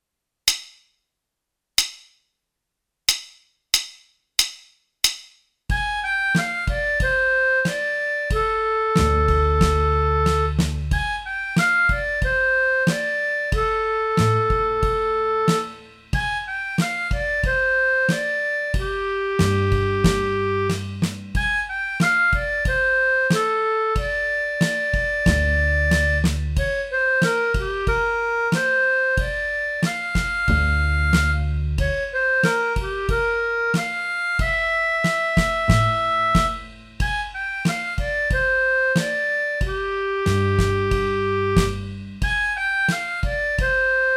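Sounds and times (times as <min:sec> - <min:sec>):
minor mood music track: 0:03.1 - 0:44.1.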